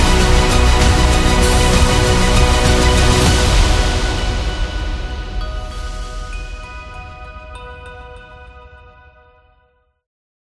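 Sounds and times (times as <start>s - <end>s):
epic sci-fi trailer music: 0.0s - 8.0s.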